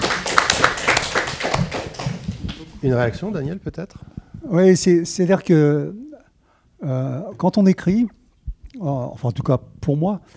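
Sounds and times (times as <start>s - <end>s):
scattered audience handclaps at a French talk: 0.0s - 2.7s
speech: 2.8s - 6.1s, 6.8s - 8.2s, 8.8s - 10.3s.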